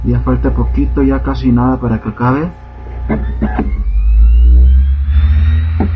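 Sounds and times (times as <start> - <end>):
speech: 0.1 - 3.9
CD-ROM drive spinning up while burning: 3.6 - 5.9.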